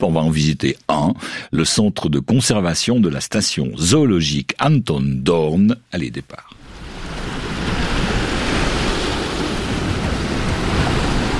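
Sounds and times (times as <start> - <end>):
speech: 0.0 - 6.6
surf at Portici on the Gulf of Naples: 6.6 - 11.3
wind at the seaside in Portici: 6.6 - 11.3.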